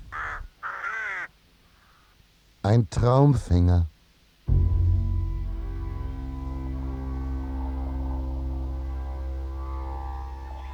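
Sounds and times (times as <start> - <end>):
raven cawing: 0.1 - 2.0, 5.5 - 10.6
speech: 2.7 - 3.9.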